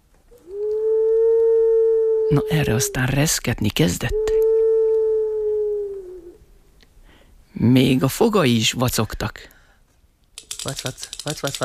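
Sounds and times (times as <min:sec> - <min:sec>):
owl hooting: 0:00.3 - 0:03.3, 0:03.9 - 0:06.6
speech: 0:02.3 - 0:04.3, 0:07.6 - 0:09.6, 0:10.6 - 0:11.6.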